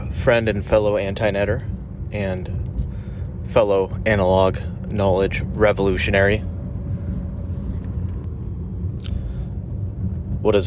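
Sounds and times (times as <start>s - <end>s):
car being driven, heard from inside: 0.0s - 10.6s
speech: 0.2s - 2.6s, 3.5s - 6.5s, 10.4s - 10.6s.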